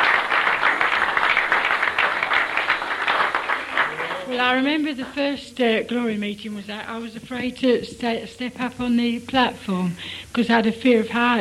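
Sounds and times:
audience applause: 0:00.0 - 0:05.2
speech: 0:04.4 - 0:11.3.

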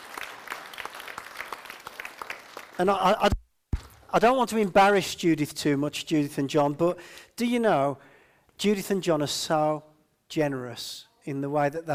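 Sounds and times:
round of applause from a crowd: 0:00.0 - 0:02.9
speech: 0:02.8 - 0:03.4, 0:04.1 - 0:11.9.

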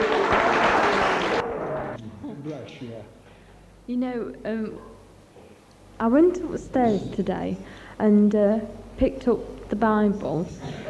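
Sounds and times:
audience clapping: 0:00.0 - 0:02.0
speech: 0:02.5 - 0:03.2, 0:03.9 - 0:04.9, 0:06.0 - 0:10.8.

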